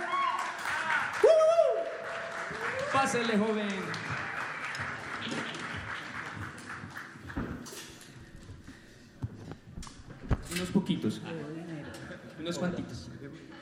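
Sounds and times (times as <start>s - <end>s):
strong audience applause: 0.0s - 7.7s
speech: 3.0s - 4.2s, 10.8s - 11.7s, 12.4s - 13.5s.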